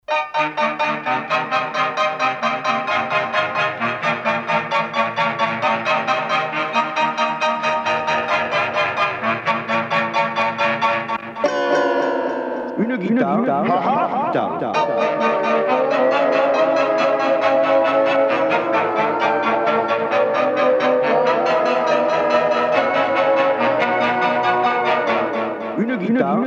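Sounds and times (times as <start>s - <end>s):
guitar: 0.2s - 26.4s
laughter: 12.7s - 26.4s.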